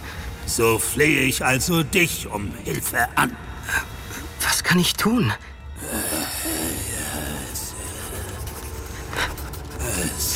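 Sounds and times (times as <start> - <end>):
speech: 0.5 - 3.9, 4.7 - 6.0
pen scratching across paper: 7.8 - 10.3.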